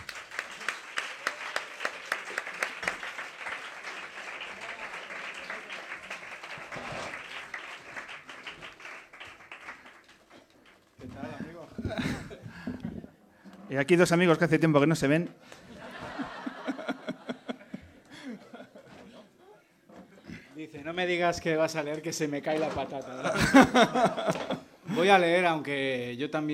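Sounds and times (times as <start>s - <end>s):
voices cheering: 0.0s - 7.5s
audience applause: 0.0s - 11.1s
laughter: 0.6s - 7.4s, 11.5s - 13.0s, 15.4s - 19.6s, 23.0s - 25.1s
speech: 13.7s - 15.6s, 21.0s - 26.5s.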